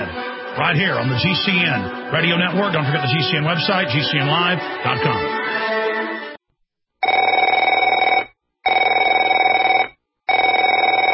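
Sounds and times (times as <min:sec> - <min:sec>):
speech: 0:00.6 - 0:05.6
telephone ringing with electronic trill: 0:07.0 - 0:11.1.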